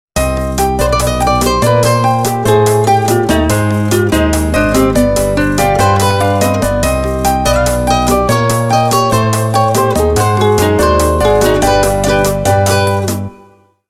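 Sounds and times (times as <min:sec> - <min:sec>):
ringtone: 0:00.8 - 0:13.6.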